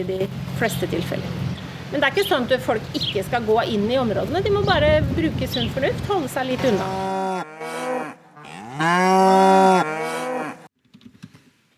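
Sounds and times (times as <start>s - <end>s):
speech: 0.0s - 7.2s, 8.8s - 9.3s
cow mooing: 6.7s - 10.7s.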